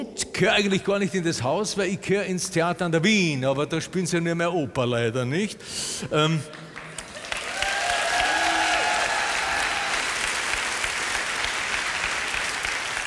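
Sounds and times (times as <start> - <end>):
speech: 0.0 - 6.6
theatre audience applause: 6.6 - 13.0.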